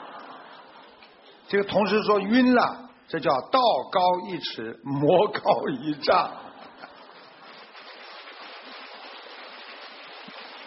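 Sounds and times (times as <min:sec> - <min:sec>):
speech: 0:01.5 - 0:06.4
audience applause: 0:06.8 - 0:10.6.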